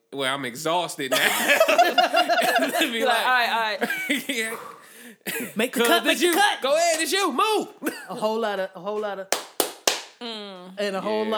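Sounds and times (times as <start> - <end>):
speech: 0.1 - 9.4, 10.2 - 11.3
laughter: 1.1 - 6.4, 7.8 - 8.4
hand claps: 5.8 - 7.1, 9.3 - 10.2.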